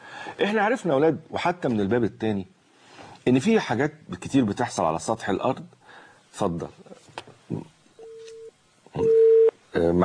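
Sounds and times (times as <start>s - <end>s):
speech: 0.3s - 2.6s, 3.2s - 7.7s, 9.8s - 10.0s
telephone busy tone after a cut-off call: 8.0s - 9.5s.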